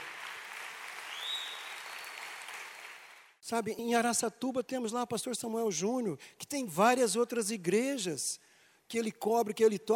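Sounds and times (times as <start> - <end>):
audience applauding: 0.0 - 3.4
speech: 3.5 - 9.9.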